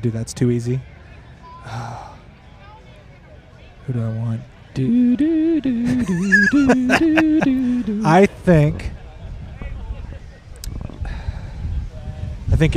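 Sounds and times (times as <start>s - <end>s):
speech: 0.0s - 0.9s, 1.6s - 2.1s, 3.9s - 9.0s, 12.6s - 12.7s
laughter: 5.6s - 8.3s
wind blowing on the microphone outdoors: 8.2s - 12.7s.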